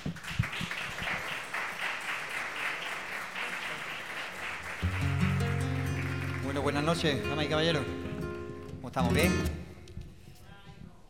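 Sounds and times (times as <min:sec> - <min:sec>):
audience welcoming applause: 0:00.0 - 0:08.4
speech: 0:06.6 - 0:08.0, 0:09.0 - 0:09.6.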